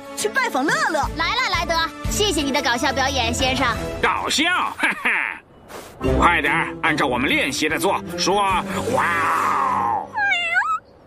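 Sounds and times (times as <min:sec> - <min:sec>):
speech: 0:00.2 - 0:05.3, 0:06.0 - 0:09.6
cartoon kittens meowing: 0:09.2 - 0:10.9.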